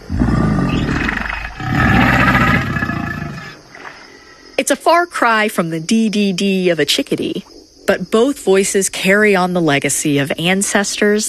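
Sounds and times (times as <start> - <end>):
alligator growling: 0.0 - 3.6
speech: 4.7 - 11.2.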